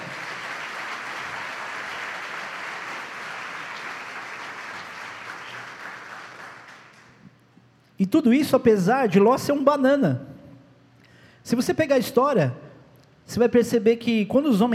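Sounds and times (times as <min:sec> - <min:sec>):
audience applause: 0:00.0 - 0:07.2
speech: 0:08.0 - 0:10.3, 0:11.5 - 0:12.6, 0:13.3 - 0:14.7.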